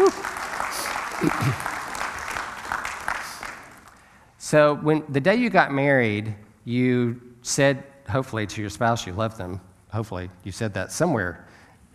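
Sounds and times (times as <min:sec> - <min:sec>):
audience applause: 0:00.0 - 0:04.0
speech: 0:01.2 - 0:01.7, 0:04.5 - 0:11.9.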